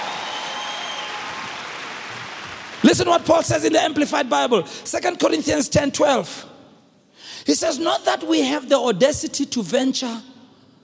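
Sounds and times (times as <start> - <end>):
audience applause: 0.0 - 2.9
speech: 2.8 - 6.6, 7.4 - 10.4.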